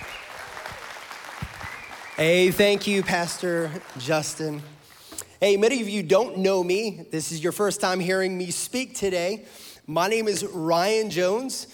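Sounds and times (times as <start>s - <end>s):
round of applause: 0.0s - 5.0s
speech: 2.2s - 4.8s, 5.4s - 11.7s.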